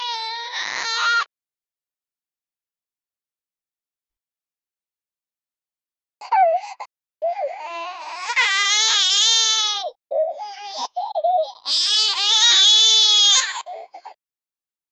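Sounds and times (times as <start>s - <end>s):
baby crying: 0.0s - 1.3s, 6.2s - 14.2s.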